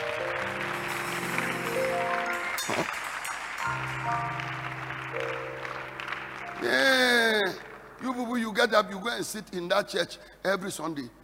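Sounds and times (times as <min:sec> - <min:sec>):
crowd clapping: 0:00.0 - 0:08.7
speech: 0:02.7 - 0:03.0, 0:08.0 - 0:11.2.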